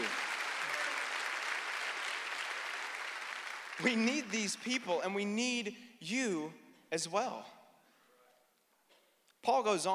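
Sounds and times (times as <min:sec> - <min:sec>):
applause: 0:00.0 - 0:05.0
speech: 0:03.8 - 0:07.6, 0:09.4 - 0:09.9.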